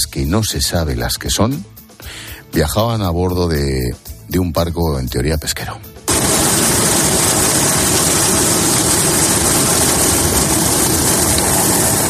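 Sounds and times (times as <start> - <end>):
speech: 0.2 - 5.9
rescue helicopter: 6.1 - 12.0.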